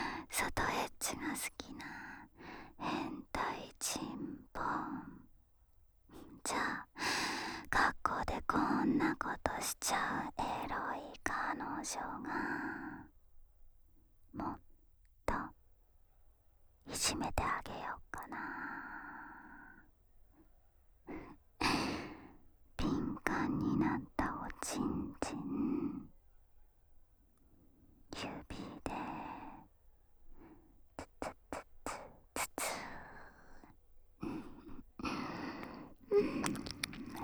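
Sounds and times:
voiceless whispering on stairs: 0.2s - 5.3s, 6.1s - 7.0s, 7.7s - 13.1s, 14.4s - 14.6s, 15.3s - 15.6s, 16.9s - 19.9s, 22.8s - 26.2s, 28.1s - 29.7s, 31.0s - 37.2s
ear licking sounds: 35.6s - 37.2s.

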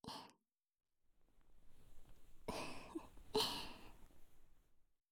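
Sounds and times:
warm ASMR breaths: 1.2s - 4.8s.

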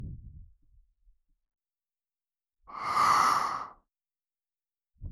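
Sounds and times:
gentle ASMR blowing into the right ear: 2.7s - 3.7s.

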